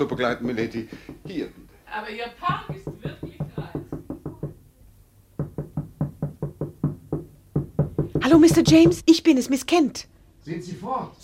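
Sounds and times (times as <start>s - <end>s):
speech: 0.0s - 2.9s, 8.4s - 11.2s
sharp hollow knocking: 0.5s - 1.7s, 2.4s - 4.7s, 5.3s - 9.2s.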